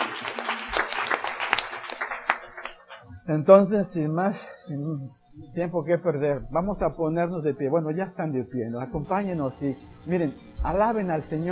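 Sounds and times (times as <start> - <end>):
audience applause: 0.0 - 3.0
speech: 3.3 - 11.5.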